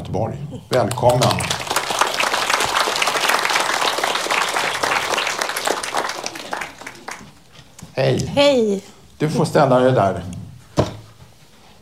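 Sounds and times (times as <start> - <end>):
speech: 0.1 - 1.7, 8.0 - 10.4
crowd applauding: 0.7 - 7.6.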